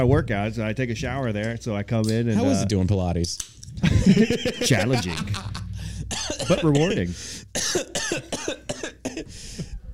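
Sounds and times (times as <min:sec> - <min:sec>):
speech: 0:00.0 - 0:05.6, 0:06.2 - 0:08.6
laughter: 0:03.8 - 0:05.8
harsh hacking coughs: 0:06.0 - 0:09.4.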